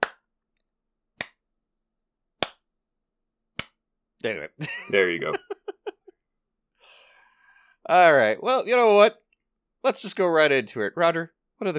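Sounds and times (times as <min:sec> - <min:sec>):
slow sparse golf clap: 0:00.0 - 0:00.2, 0:02.4 - 0:02.6
speech: 0:04.2 - 0:05.6, 0:07.9 - 0:09.2, 0:09.8 - 0:11.7
laughter: 0:04.6 - 0:06.1.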